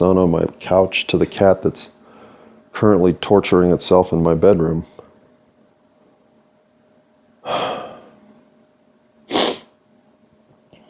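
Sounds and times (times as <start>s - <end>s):
speech: 0.0s - 2.0s, 2.8s - 4.9s
sniffling: 7.4s - 8.2s, 9.3s - 9.8s
sneeze: 9.3s - 9.8s.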